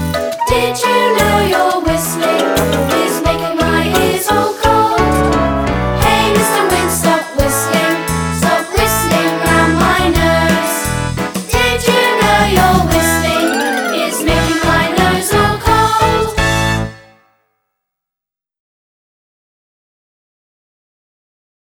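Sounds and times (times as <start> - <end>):
children singing: 0.0 - 16.7.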